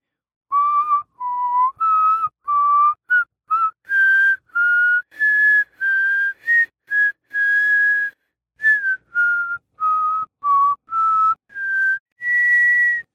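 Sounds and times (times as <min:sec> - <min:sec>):
man whistling: 0:00.5 - 0:13.1.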